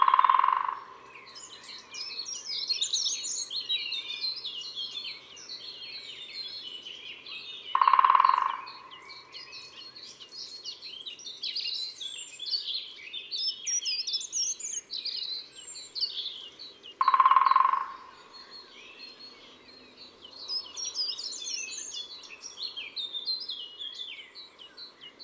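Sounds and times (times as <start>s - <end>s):
great spotted woodpecker: 0.0s - 1.9s, 7.7s - 9.8s, 16.9s - 18.8s.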